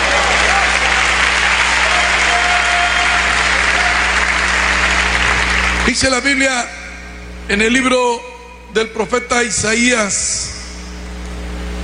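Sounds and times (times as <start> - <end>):
audience applauding: 0.0 - 6.0
speech: 5.8 - 6.8, 7.5 - 10.6.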